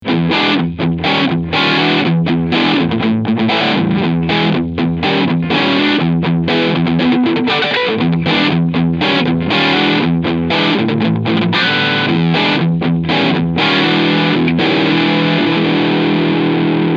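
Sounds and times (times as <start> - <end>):
guitar through Keeley DDR overdrive: 0.0 - 16.9.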